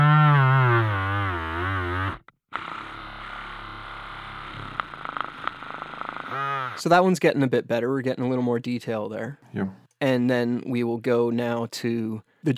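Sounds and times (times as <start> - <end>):
small milk blender motor through a contact microphone: 0.0 - 6.8
speech: 6.8 - 12.5.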